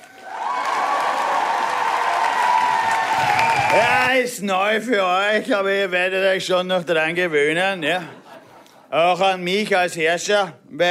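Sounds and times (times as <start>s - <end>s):
artificial audience cheering and applause: 0.0s - 4.3s
speech: 3.2s - 8.2s, 8.9s - 10.8s.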